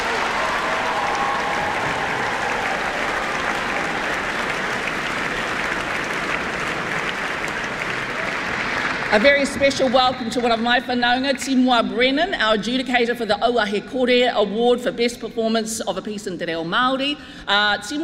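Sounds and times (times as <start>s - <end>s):
audience applause: 0.0s - 10.7s
speech: 9.1s - 18.0s.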